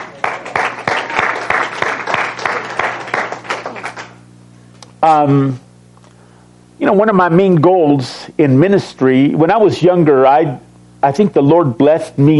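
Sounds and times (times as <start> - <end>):
audience applause: 0.0 - 4.2
speech: 5.0 - 5.6, 6.8 - 12.3.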